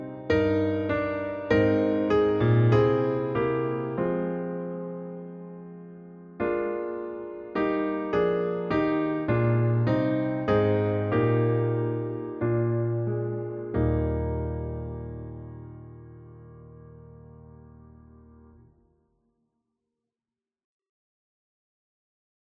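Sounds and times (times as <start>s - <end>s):
piano version of church music: 0.0s - 18.8s.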